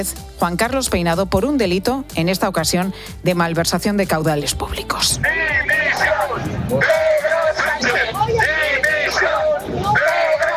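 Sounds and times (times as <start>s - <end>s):
speech: 0.0s - 7.2s
crowd shouting outside courthouse: 5.2s - 10.5s.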